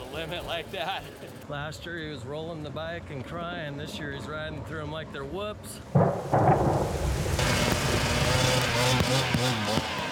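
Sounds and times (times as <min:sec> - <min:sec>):
speech: 0:00.2 - 0:07.3, 0:08.0 - 0:10.0
dull thumps: 0:06.0 - 0:09.2
heavy rain pouring down: 0:06.0 - 0:10.0.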